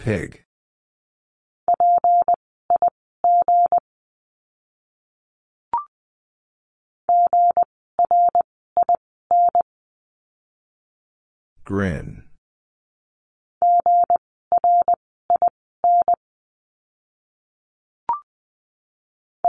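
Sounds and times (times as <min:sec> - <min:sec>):
speech: 0:00.0 - 0:00.4, 0:11.7 - 0:12.2
Morse code word at 20 wpm: 0:01.7 - 0:03.8, 0:07.1 - 0:09.6, 0:13.6 - 0:16.2.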